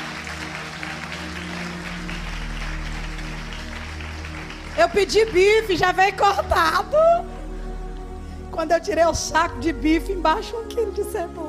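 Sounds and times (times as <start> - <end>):
audience applause: 0.0 - 6.1
speech: 4.8 - 7.3, 8.6 - 11.4.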